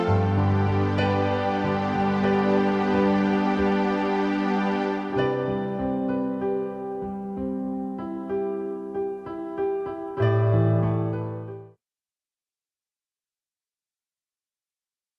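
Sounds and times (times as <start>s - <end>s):
piano: 0.0s - 11.8s.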